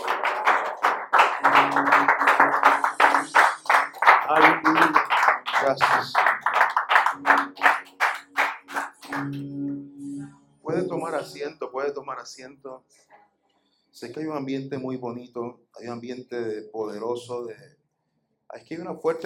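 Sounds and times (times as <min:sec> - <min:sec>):
audience applauding: 0:00.0 - 0:09.4
speech: 0:01.7 - 0:03.0, 0:05.7 - 0:06.2, 0:11.8 - 0:13.1, 0:14.0 - 0:17.8, 0:18.7 - 0:19.2.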